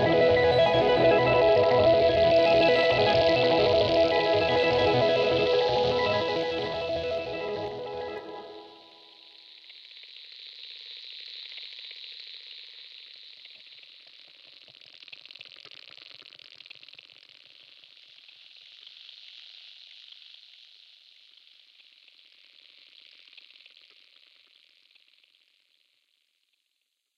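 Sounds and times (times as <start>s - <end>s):
ambient music: 0.0s - 9.0s.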